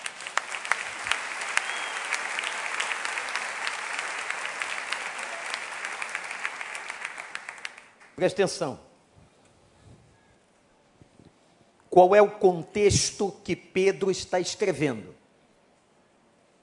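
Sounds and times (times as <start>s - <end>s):
audience applause: 0.0s - 8.1s
speech: 8.2s - 8.9s, 12.0s - 15.2s.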